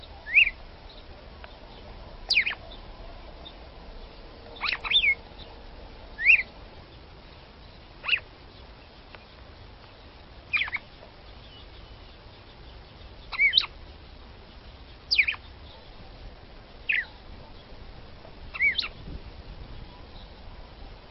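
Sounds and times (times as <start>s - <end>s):
red-cowled cardinal female singing short sweeping whistles: 0.2s - 0.6s, 2.3s - 2.6s, 4.6s - 5.2s, 6.2s - 6.5s, 10.5s - 10.9s, 13.3s - 13.7s, 15.1s - 15.4s, 16.9s - 17.1s, 18.5s - 19.0s.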